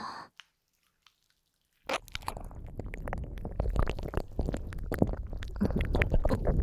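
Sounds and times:
ear licking ASMR: 1.9 - 6.6.

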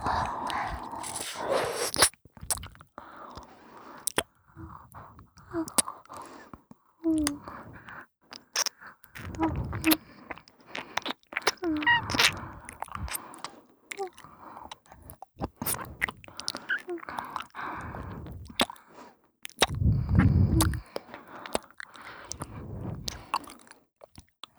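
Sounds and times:
endless ear licking: 0.2 - 2.7, 8.5 - 18.8, 19.5 - 23.7.

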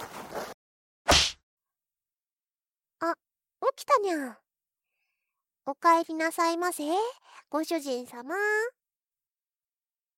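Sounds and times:
hard slap to the face to wake someone after fainting: 1.1 - 1.4
speech: 3.0 - 4.4, 5.6 - 8.8.

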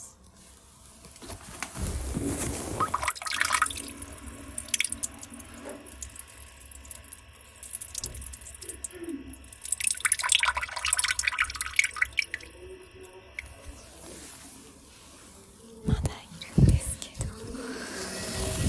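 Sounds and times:
person urinating in a shop toilet: 1.6 - 14.9, 17.4 - 18.6.

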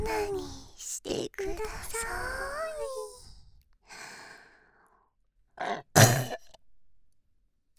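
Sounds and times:
speech: 0.1 - 3.0
burping: 5.6 - 6.6.

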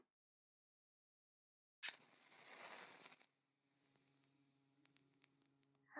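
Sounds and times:
ear cleaning ASMR: 1.8 - 3.3.

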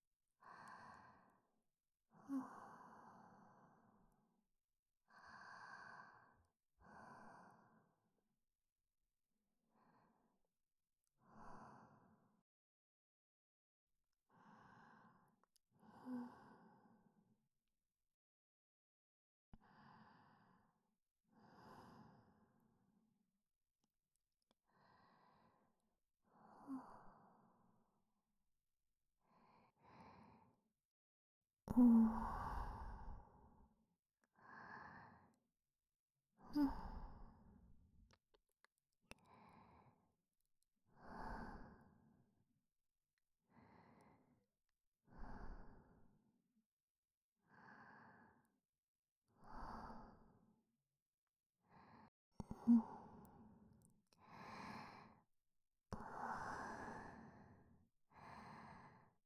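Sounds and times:
breathing in the left ear: 0.4 - 4.1, 5.1 - 8.0, 11.2 - 12.4, 14.3 - 17.2, 19.6 - 22.6, 24.7 - 27.7, 29.2 - 30.6, 31.8 - 33.7, 34.3 - 35.4, 36.4 - 37.6, 39.1 - 40.2, 40.9 - 42.2, 43.4 - 44.4, 45.0 - 46.2, 47.4 - 48.6, 49.4 - 50.5, 51.6 - 55.4, 56.0 - 59.2.

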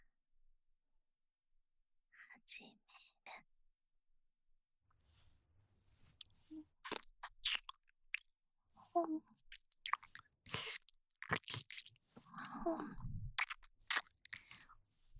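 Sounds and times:
ear licking in the right ear: 6.2 - 8.3, 9.4 - 12.6, 13.4 - 14.7.

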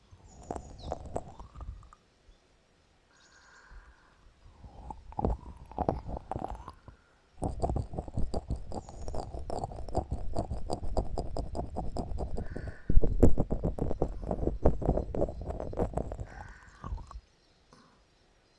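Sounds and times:
oily finger ear cleaning on the left: 0.3 - 1.9, 4.6 - 17.2.

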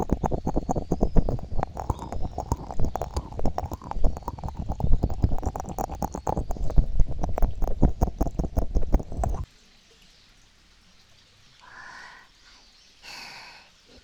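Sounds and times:
oily finger ear cleaning on the left: 0.0 - 9.4.

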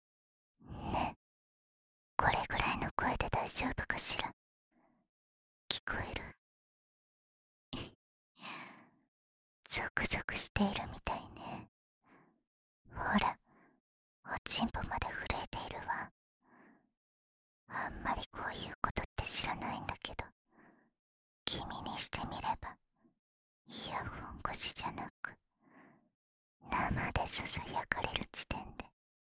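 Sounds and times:
whispering in the ear: 2.2 - 4.4, 5.7 - 6.4, 7.8 - 8.0, 9.7 - 11.7, 12.9 - 13.4, 14.3 - 16.1, 17.7 - 20.4, 21.5 - 22.8, 23.7 - 25.4, 26.7 - 29.0.

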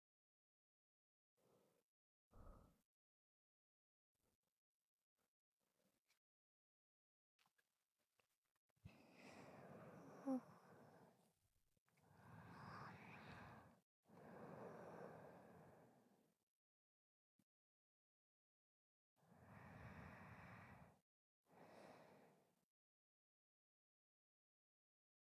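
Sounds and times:
sleeping breaths: 8.9 - 11.2, 12.1 - 16.2, 19.4 - 22.5.

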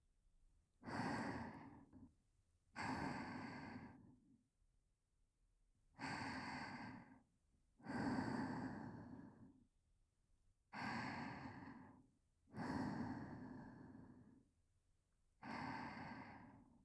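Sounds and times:
whispered breathing: 0.8 - 2.0, 2.8 - 4.3, 6.0 - 9.6, 10.8 - 14.5, 15.4 - 16.8.

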